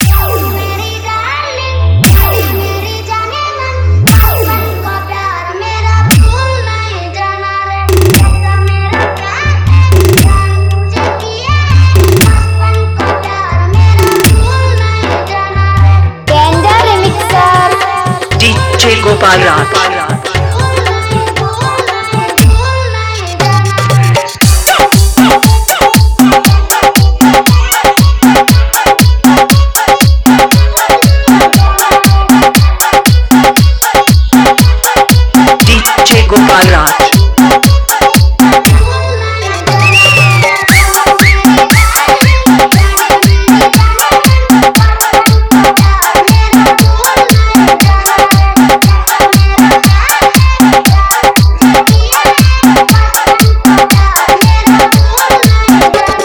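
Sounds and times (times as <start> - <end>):
hard dholki remix song: 0.0 - 56.2.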